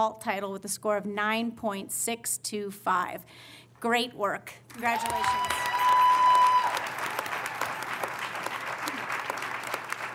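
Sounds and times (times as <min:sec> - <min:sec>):
speech: 0:00.0 - 0:05.6
crowd clapping: 0:04.7 - 0:10.1.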